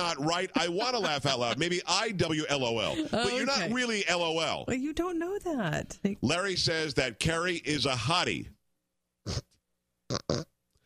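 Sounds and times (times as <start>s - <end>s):
laughter: 0.0s - 3.9s
speech: 0.0s - 8.6s, 9.2s - 9.5s, 10.1s - 10.5s
person blowing nose: 9.2s - 10.5s.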